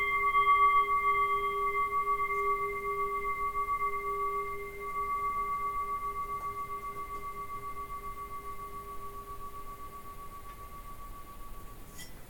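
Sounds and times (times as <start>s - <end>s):
Bengal singing bowl of 500 to 600 g in F sharp: 0.0s - 12.1s.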